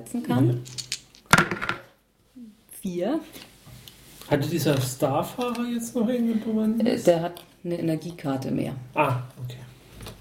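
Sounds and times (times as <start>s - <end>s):
speech: 0.0s - 0.8s, 2.4s - 3.5s, 4.3s - 9.6s
two dice rolling: 0.6s - 1.9s.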